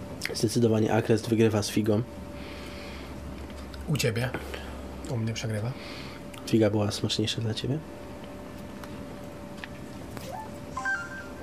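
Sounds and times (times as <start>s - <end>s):
speech: 0.3s - 2.3s, 3.9s - 8.0s
instant messenger notification tones: 10.3s - 11.4s.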